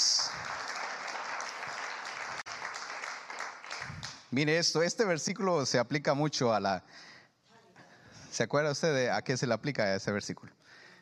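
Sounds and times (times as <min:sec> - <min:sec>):
audience applause: 0:00.0 - 0:04.2
speech: 0:04.3 - 0:07.1, 0:08.4 - 0:10.6.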